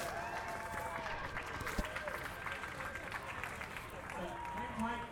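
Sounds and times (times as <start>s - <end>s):
audience applause: 0.1s - 5.0s.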